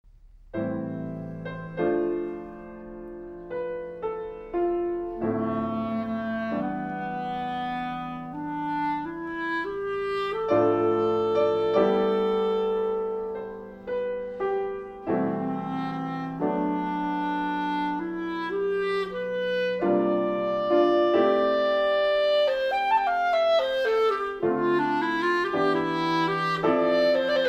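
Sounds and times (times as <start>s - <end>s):
clarinet and piano sonata: 0.5s - 27.4s.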